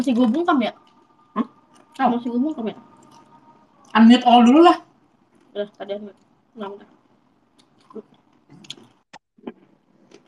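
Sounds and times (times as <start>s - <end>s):
people chewing food during a mukbang: 0.0s - 2.1s, 2.7s - 4.1s, 7.5s - 10.2s
speech: 0.0s - 2.9s, 4.0s - 4.9s, 5.6s - 7.0s, 7.9s - 8.7s.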